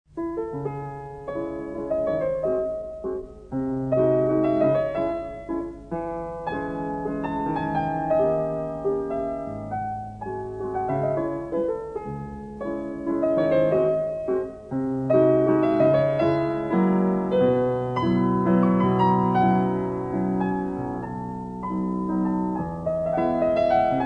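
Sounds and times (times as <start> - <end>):
mazurka in C-sharp minor: 0.1 - 24.0.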